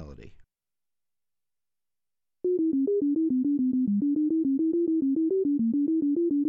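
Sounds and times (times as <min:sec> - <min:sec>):
melody: 0:02.5 - 0:06.4.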